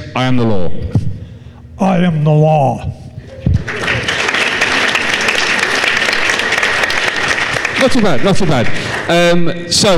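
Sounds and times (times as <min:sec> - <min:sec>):
speech: 0:00.2 - 0:01.0, 0:01.8 - 0:02.9, 0:07.8 - 0:09.9
audience clapping: 0:03.6 - 0:09.6.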